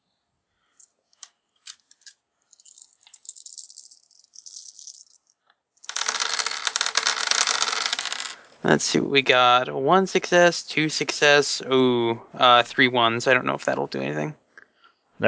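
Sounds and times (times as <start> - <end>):
handful of dice rattling and spilling: 1.7 - 8.6
speech: 8.7 - 14.4.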